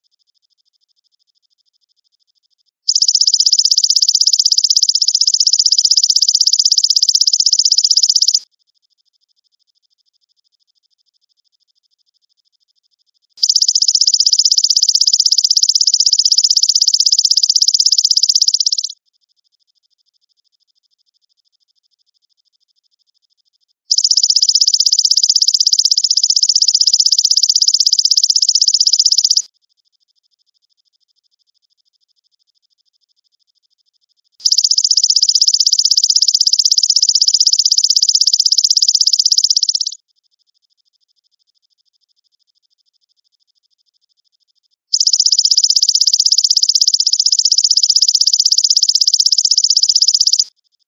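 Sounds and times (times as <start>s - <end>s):
grasshopper trilling: 2.9s - 8.4s, 13.4s - 19.0s, 23.9s - 29.4s, 34.4s - 40.0s, 44.9s - 50.5s.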